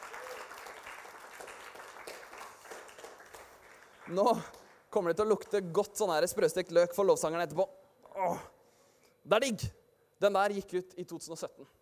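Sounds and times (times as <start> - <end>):
audience applause: 0.0 - 4.9
speech: 4.1 - 8.5, 9.2 - 11.8.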